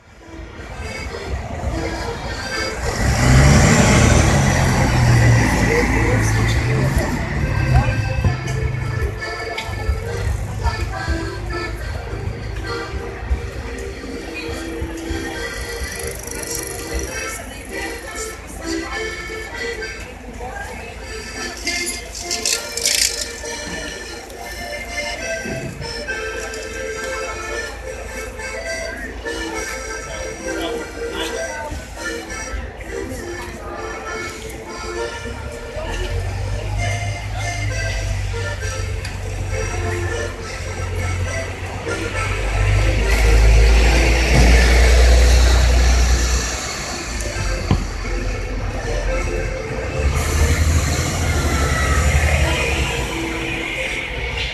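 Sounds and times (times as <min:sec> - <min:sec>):
accordion player playing street music on Slovenska street: 0:00.0 - 0:54.5.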